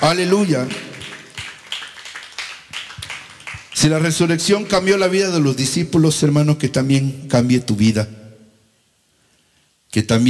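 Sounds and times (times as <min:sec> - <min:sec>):
speech: 0:00.0 - 0:00.9, 0:03.8 - 0:08.2, 0:10.0 - 0:10.2
audience clapping: 0:00.0 - 0:04.3.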